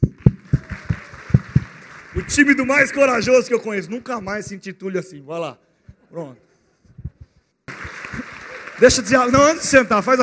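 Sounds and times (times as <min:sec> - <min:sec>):
round of applause: 0:00.0 - 0:03.6, 0:07.7 - 0:10.2
speech: 0:02.2 - 0:06.5, 0:08.8 - 0:10.2.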